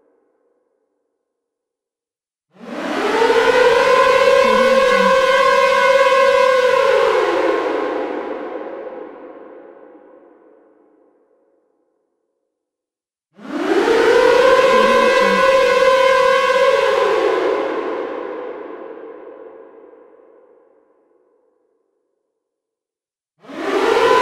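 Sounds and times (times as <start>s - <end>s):
air raid siren: 2.6s - 9.6s, 13.4s - 19.4s, 23.4s - 24.2s.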